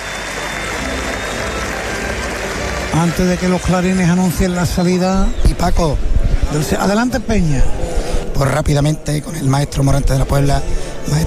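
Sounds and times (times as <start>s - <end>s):
bullring crowd ovation: 0.0s - 5.9s
speech: 2.9s - 7.8s, 8.4s - 11.2s.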